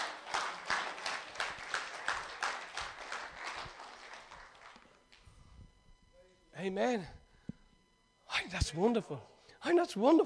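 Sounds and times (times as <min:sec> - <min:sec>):
audience clapping: 0:00.0 - 0:05.3
speech: 0:06.6 - 0:07.2, 0:08.5 - 0:10.2.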